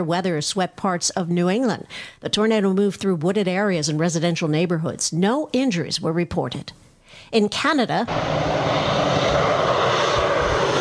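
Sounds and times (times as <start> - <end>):
speech: 0.0 - 9.0
firefighting airplanes dropping water on wildfires in Canada's Northwest Territories: 8.1 - 10.7.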